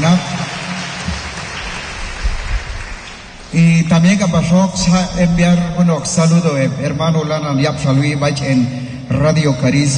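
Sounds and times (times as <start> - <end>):
loud applause: 0.0 - 3.6
speech: 0.1 - 0.4, 3.5 - 9.9.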